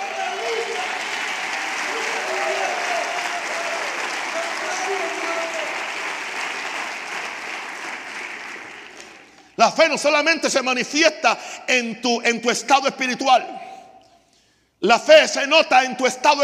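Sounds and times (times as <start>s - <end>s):
large audience applause: 0.0s - 9.4s
speech: 9.6s - 13.6s, 14.8s - 16.4s.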